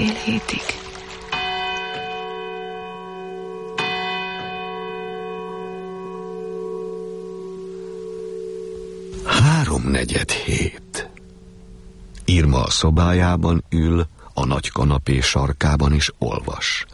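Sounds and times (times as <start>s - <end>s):
speech: 0.1s - 0.8s, 9.7s - 10.8s, 12.5s - 16.9s
church bell striking three o'clock: 0.9s - 13.2s.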